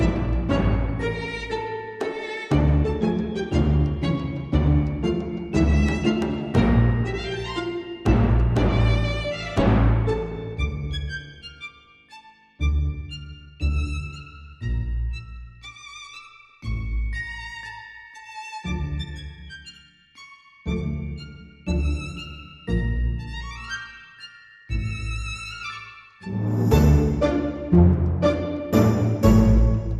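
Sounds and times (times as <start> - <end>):
percussion: 0.0 - 11.5, 20.7 - 29.9
strings: 0.0 - 29.9.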